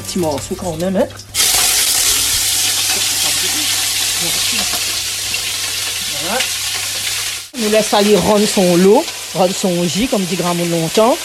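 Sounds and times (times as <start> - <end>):
duck skin crackling and frying in a pot: 0.0 - 11.2
speech: 0.1 - 1.4, 7.6 - 11.2.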